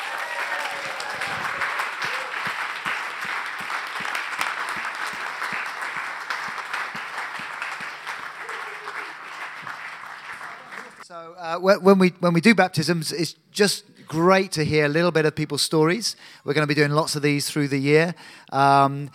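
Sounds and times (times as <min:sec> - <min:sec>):
congregation applause at a church baptism service: 0:00.0 - 0:11.1
speech: 0:11.5 - 0:19.1.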